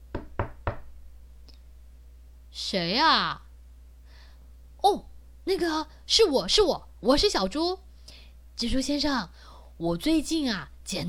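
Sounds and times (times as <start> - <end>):
knocking on a door: 0.0 - 0.9
speech: 2.7 - 3.4, 4.8 - 7.8, 8.6 - 11.0.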